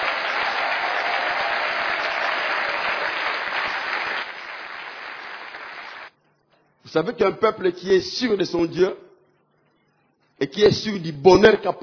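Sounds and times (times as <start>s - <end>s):
audience applause: 0.0s - 6.1s
speech: 6.9s - 9.0s, 10.4s - 11.8s.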